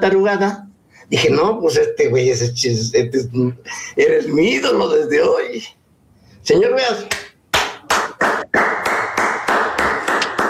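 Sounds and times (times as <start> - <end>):
speech: 0.0 - 5.8, 6.4 - 7.2
applause: 7.5 - 10.4.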